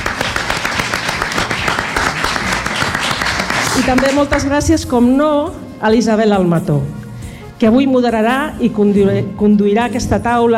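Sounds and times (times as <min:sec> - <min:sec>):
audience applause: 0:00.0 - 0:04.5
speech: 0:03.8 - 0:07.0, 0:07.6 - 0:10.5.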